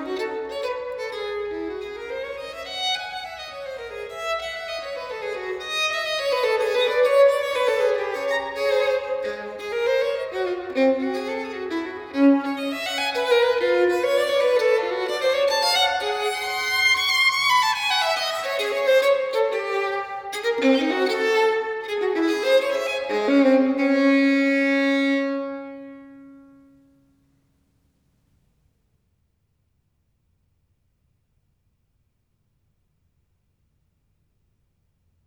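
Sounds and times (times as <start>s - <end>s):
solo violin piece in D minor: 0.0s - 26.8s.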